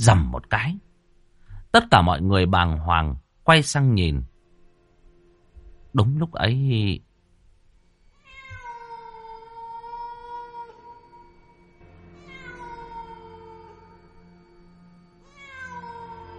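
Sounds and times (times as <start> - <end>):
speech: 0.0 - 0.9, 1.7 - 4.3, 6.0 - 7.1
black cat meowing: 8.2 - 14.3, 15.3 - 16.3.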